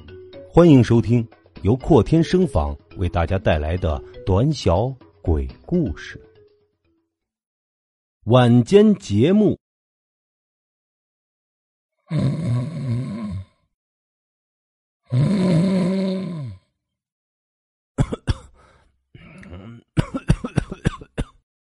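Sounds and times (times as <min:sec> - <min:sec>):
speech: 0:00.5 - 0:06.3, 0:08.2 - 0:09.6, 0:12.1 - 0:12.5, 0:15.1 - 0:15.7
man groaning: 0:12.1 - 0:13.5, 0:15.1 - 0:16.6, 0:19.2 - 0:20.0
man coughing and clearing his throat: 0:18.0 - 0:18.6, 0:19.2 - 0:21.4.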